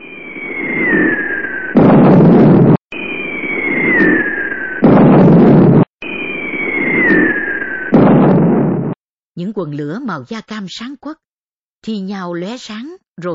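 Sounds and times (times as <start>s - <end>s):
warplanes roaring low overhead at night: 0.0s - 1.8s, 2.4s - 8.0s
high whistle of bombs falling on a village: 0.0s - 9.0s
speech: 9.6s - 11.2s, 11.8s - 13.3s.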